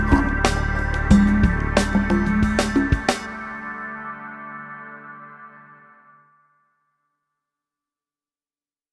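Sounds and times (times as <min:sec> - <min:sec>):
space lounge music: 0:00.0 - 0:05.1.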